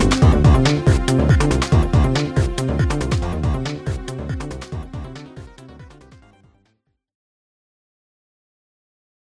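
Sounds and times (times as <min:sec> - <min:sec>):
anxiety countdown music: 0:00.0 - 0:06.6.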